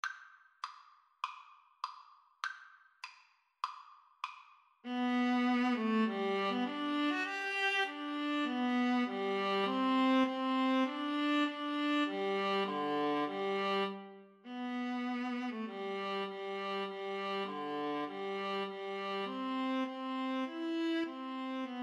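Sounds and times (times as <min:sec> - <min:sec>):
viola duet: 0:04.9 - 0:21.8.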